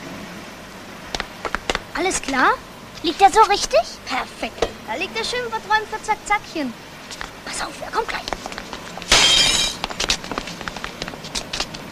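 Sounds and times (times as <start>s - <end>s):
speech: 2.0s - 8.4s
glass clattering and tinkling: 9.1s - 9.8s
window pane smashed by a football on a street: 9.1s - 9.9s.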